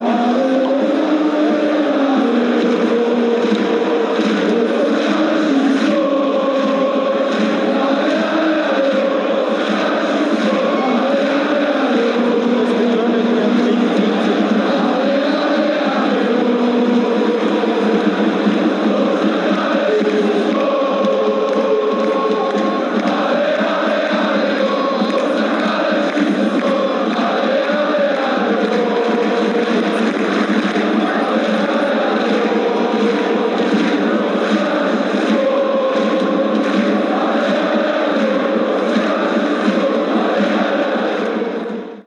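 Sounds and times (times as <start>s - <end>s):
football fans chanting: 0.0s - 42.0s.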